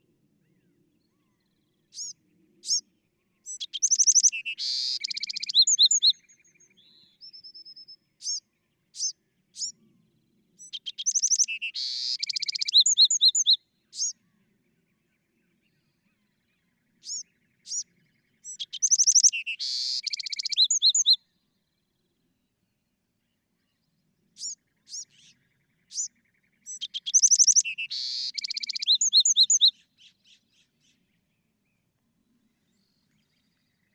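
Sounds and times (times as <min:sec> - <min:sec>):
Bewick's wren singing: 0:01.9 - 0:02.8, 0:03.5 - 0:07.0, 0:08.2 - 0:08.4, 0:09.0 - 0:09.8, 0:10.6 - 0:14.2, 0:17.0 - 0:21.2, 0:24.4 - 0:30.4.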